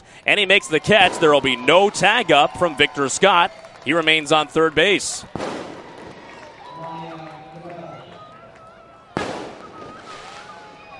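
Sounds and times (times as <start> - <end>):
speech: 0.2 - 5.6
fireworks popping and fizzling outside a ballpark: 5.2 - 6.6, 9.2 - 10.9.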